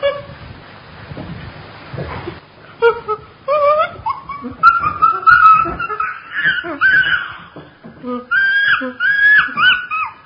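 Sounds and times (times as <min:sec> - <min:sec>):
chimpanzee whimpering and squealing calls: 0:03.0 - 0:07.6, 0:08.2 - 0:10.2.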